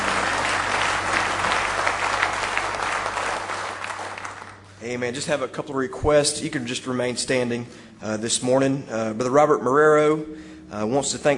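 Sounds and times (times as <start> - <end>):
church congregation clapping in praise during a morning service: 0.0 - 4.8
low constant hum: 0.0 - 11.3
speech: 4.8 - 11.3.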